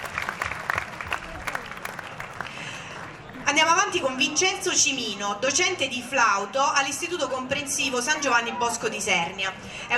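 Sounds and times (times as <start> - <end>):
audience applause: 0.0 - 3.3
speech: 3.6 - 9.9.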